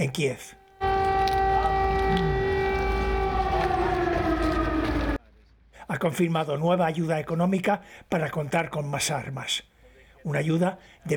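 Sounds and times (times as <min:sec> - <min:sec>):
speech: 0:00.0 - 0:00.6, 0:05.9 - 0:11.1
air raid siren wailing: 0:00.6 - 0:05.2
low rumbling background: 0:00.8 - 0:05.2.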